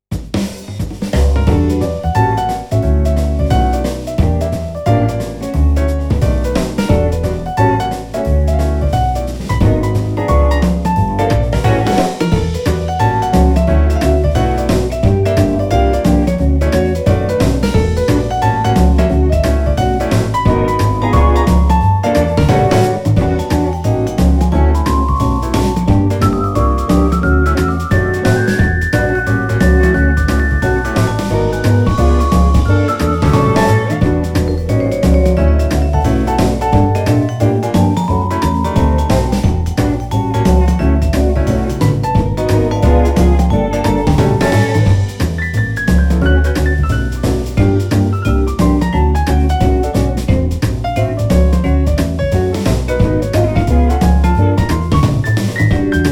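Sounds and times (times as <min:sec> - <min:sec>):
5-piece jazz band: 0:00.1 - 0:56.0.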